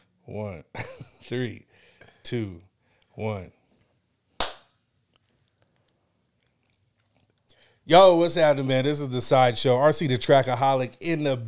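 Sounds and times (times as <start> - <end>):
speech: 0.3 - 1.7, 2.3 - 3.6, 7.9 - 11.4
hand clap: 4.4 - 4.8.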